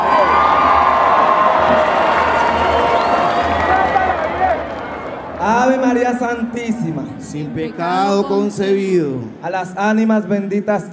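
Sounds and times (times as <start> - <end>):
audience applause: 0.0 - 6.2
speech: 6.2 - 10.9.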